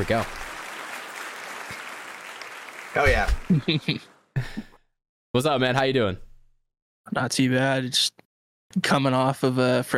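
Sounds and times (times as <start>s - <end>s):
speech: 0.0s - 0.4s, 2.9s - 4.6s, 5.3s - 6.2s, 7.1s - 9.9s
round of applause: 0.0s - 4.2s
laughter: 3.0s - 4.7s.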